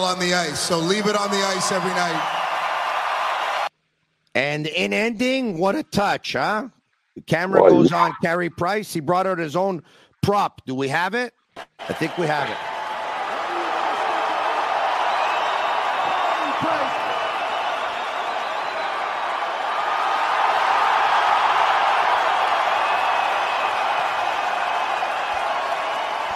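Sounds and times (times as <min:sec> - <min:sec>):
speech: 0:00.0 - 0:02.4, 0:04.4 - 0:12.7
large arena crowd applauding and cheering: 0:00.0 - 0:03.7, 0:11.6 - 0:26.3.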